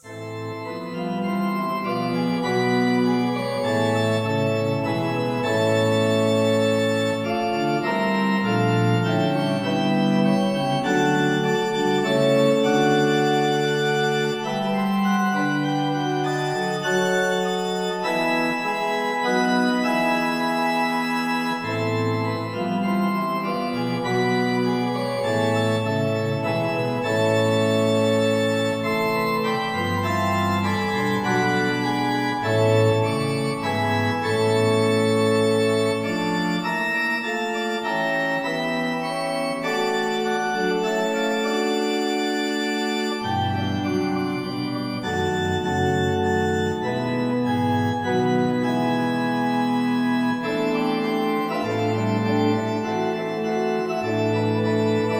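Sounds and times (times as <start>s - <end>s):
Farfisa organ modulations: 0.0s - 55.1s.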